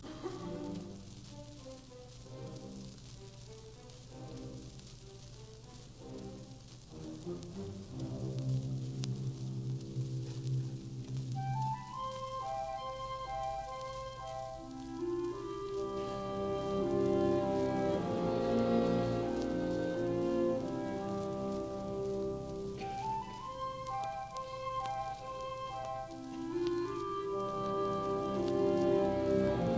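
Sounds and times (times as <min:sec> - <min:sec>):
symphony orchestra playing a slow symphonic movement in G major: 0:00.0 - 0:02.8, 0:06.0 - 0:10.7, 0:11.4 - 0:29.7.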